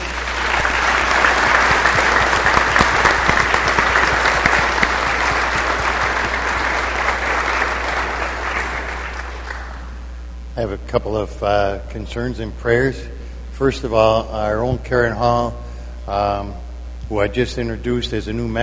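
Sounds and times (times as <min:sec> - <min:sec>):
audience applause: 0:00.0 - 0:10.0
speech: 0:10.6 - 0:18.6.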